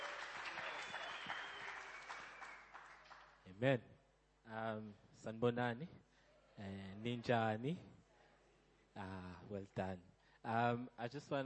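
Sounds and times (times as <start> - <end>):
audience clapping: 0.0 - 3.4
speech: 3.6 - 8.0, 9.0 - 11.4.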